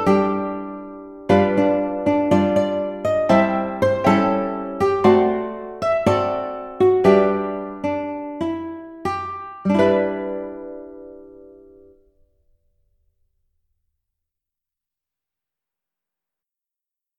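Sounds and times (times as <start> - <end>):
ukulele: 0.0 - 12.5.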